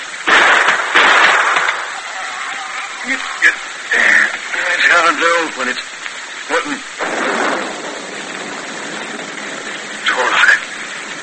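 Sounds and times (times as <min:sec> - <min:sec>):
gunshots shooting the lock off a chest: 0:00.2 - 0:03.6, 0:07.0 - 0:10.3
speech: 0:05.0 - 0:05.9, 0:06.5 - 0:07.0.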